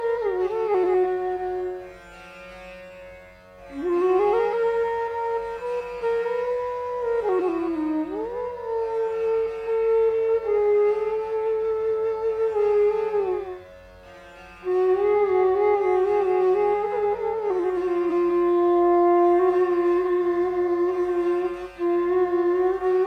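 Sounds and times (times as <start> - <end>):
flute playing Indian raga: 0.0 - 23.0.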